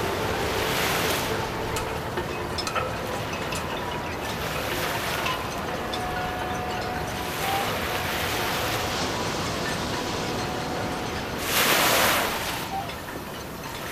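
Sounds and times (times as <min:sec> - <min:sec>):
harbour ambience: 0:00.0 - 0:13.9.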